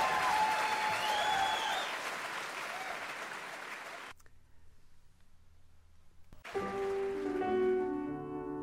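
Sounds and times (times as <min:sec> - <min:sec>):
audience clapping and cheering: 0:00.0 - 0:04.2, 0:06.4 - 0:08.1.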